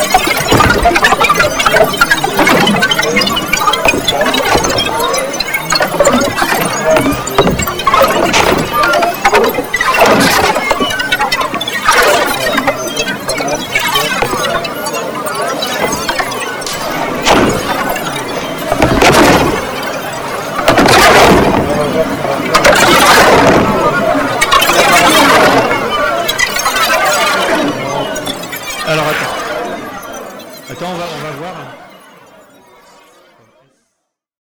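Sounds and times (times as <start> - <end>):
voice: 0.0 - 9.2, 12.0 - 16.1, 20.4 - 30.0, 30.7 - 31.9
water: 0.0 - 30.7.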